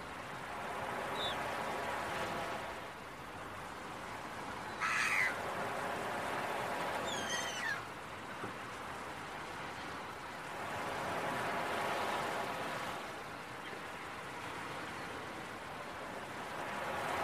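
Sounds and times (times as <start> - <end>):
continuous ocean waves: 0.0 - 17.2
gull calls: 4.8 - 5.4, 7.0 - 7.9.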